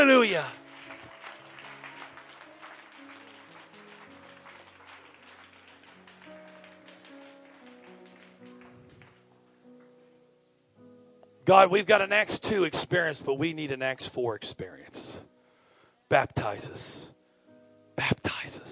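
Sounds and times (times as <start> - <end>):
speech: 0.0 - 0.6, 11.5 - 15.3, 16.1 - 17.2, 18.0 - 18.6
audience clapping hands: 0.0 - 9.6.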